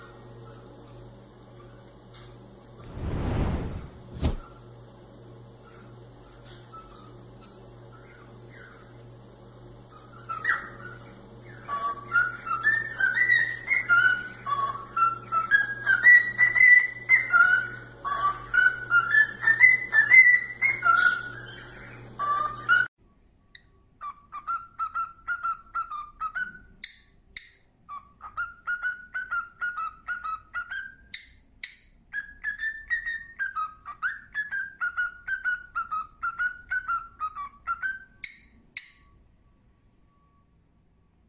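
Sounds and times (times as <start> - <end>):
low hum: 2.8 - 4.5
cockatiel whistling: 9.9 - 22.9, 24.0 - 26.7, 27.9 - 31.2, 32.1 - 39.1.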